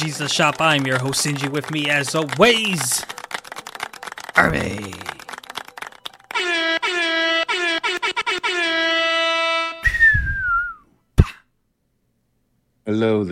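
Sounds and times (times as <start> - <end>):
speech: 0.0 - 3.2, 4.4 - 5.1, 12.9 - 13.3
loud sustained horn-like blare: 6.4 - 9.9
falling firework whistle with rumbling crackle: 9.7 - 10.8.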